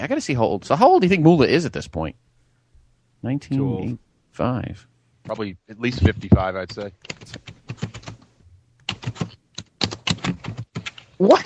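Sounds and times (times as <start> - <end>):
speech: 0.0 - 2.2, 3.2 - 8.0, 11.2 - 11.4
typewriter typing: 6.6 - 8.3, 8.9 - 11.2.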